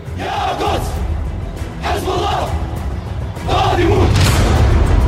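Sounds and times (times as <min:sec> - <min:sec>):
large crowd chanting in unison: 0:00.0 - 0:04.9.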